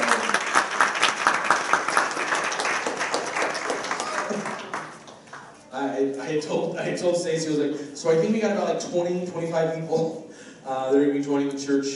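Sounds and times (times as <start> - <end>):
audience round of applause: 0.0 - 5.6
speech: 5.8 - 11.9.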